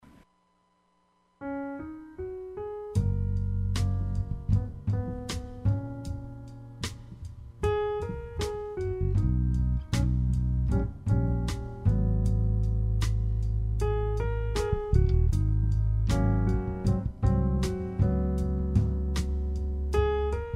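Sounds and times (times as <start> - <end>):
jazz music: 1.8 - 20.5.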